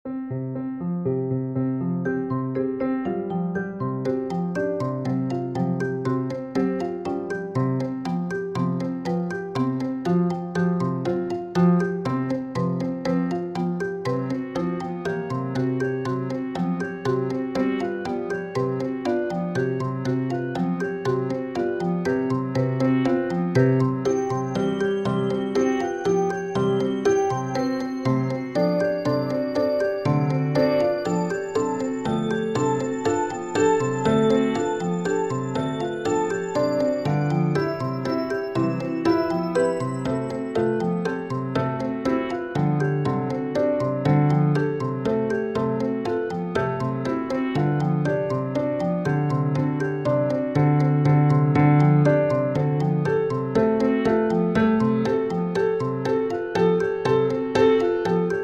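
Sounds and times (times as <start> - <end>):
musical instruments: 0.1 - 58.4.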